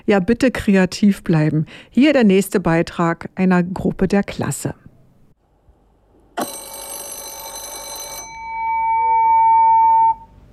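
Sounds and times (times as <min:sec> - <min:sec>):
speech: 0:00.1 - 0:04.8, 0:06.4 - 0:06.6
school bell ringing: 0:06.4 - 0:10.2.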